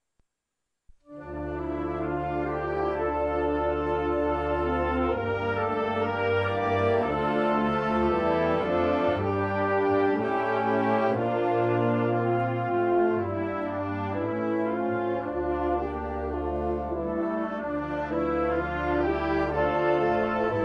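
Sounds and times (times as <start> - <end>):
national military band playing a national anthem: 1.2 - 20.6.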